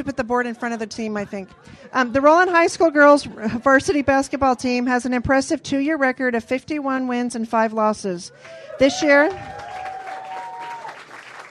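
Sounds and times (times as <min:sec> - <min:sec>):
speech: 0:00.0 - 0:09.7
people clapping: 0:08.4 - 0:11.4.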